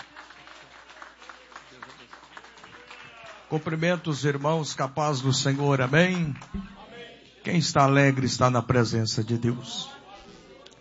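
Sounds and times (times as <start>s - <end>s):
audience applause: 0.0s - 7.0s
speech: 3.5s - 6.7s, 7.4s - 10.0s.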